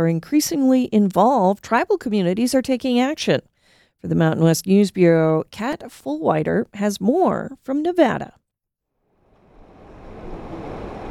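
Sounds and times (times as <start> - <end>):
speech: 0.0 - 8.4
waters of the Truckee River flowing through Reno: 9.3 - 11.0.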